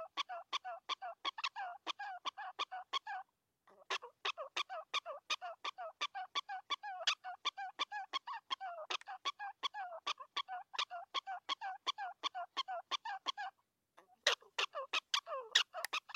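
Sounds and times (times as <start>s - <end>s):
prairie dog yipping: 0.0s - 16.1s.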